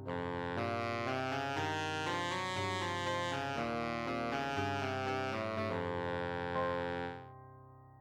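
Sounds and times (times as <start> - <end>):
saxophone: 0.1 - 7.4.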